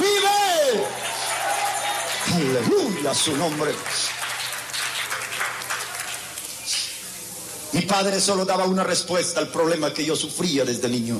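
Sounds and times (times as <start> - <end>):
audience applauding: 0.0 - 6.8
speech: 2.5 - 4.2, 7.8 - 11.1.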